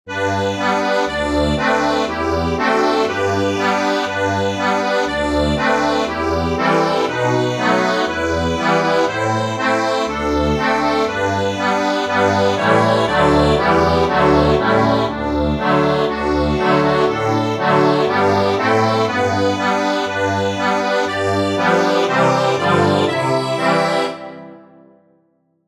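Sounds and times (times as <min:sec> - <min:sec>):
accordion: 0:00.1 - 0:24.9.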